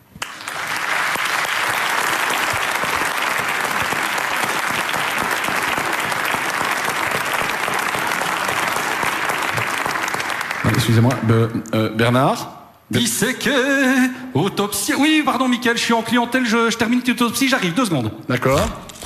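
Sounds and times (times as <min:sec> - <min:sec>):
audience applause: 0:00.0 - 0:11.5
speech: 0:10.9 - 0:18.8.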